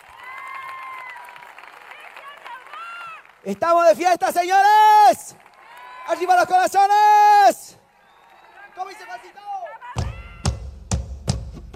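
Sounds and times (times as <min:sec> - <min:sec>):
audience applause: 0:00.0 - 0:07.0, 0:07.8 - 0:09.9
speech: 0:03.4 - 0:05.4, 0:06.1 - 0:07.8.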